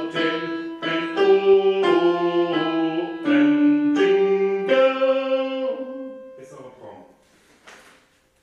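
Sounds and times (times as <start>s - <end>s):
alto voices singing a Christmas carol: 0.0s - 6.5s.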